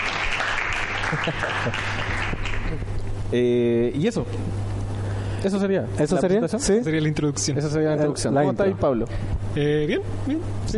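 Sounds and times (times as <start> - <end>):
audience applause for the sopaipillas: 0.0 - 2.8
speech: 1.1 - 4.7, 5.4 - 10.7.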